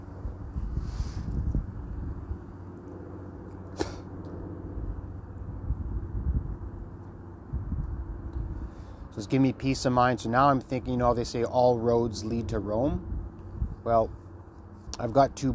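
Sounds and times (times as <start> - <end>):
wind blowing in from the northwest: 0.0 - 2.6, 4.7 - 9.3, 10.4 - 14.2
speech: 9.2 - 13.1, 13.8 - 14.2, 15.0 - 15.5.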